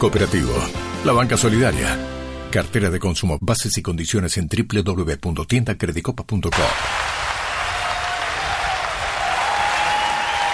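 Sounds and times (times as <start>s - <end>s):
speech: 0.0s - 7.2s
audience applause: 6.5s - 10.5s.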